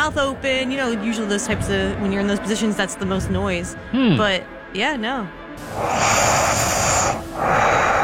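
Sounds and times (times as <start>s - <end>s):
speech: 0.1s - 7.8s
heavy nasal breathing during sleep: 5.6s - 8.0s.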